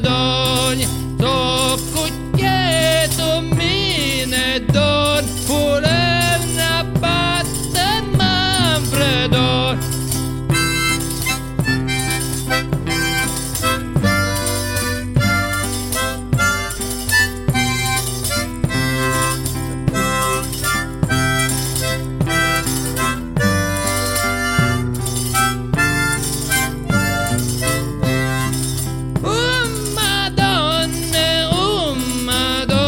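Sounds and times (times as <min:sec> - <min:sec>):
person singing: 0:00.0 - 0:11.3, 0:29.2 - 0:32.8
chitarra battente guitar strumming: 0:00.0 - 0:32.8.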